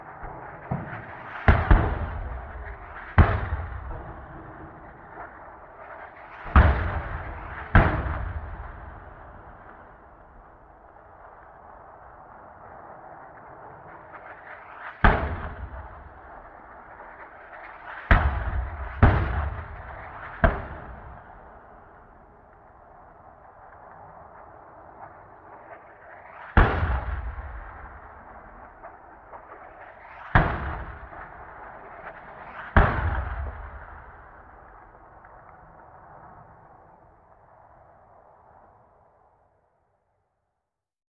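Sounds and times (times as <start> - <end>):
mortar cannon firing: 0.0 - 10.6, 15.0 - 22.7, 26.4 - 35.6.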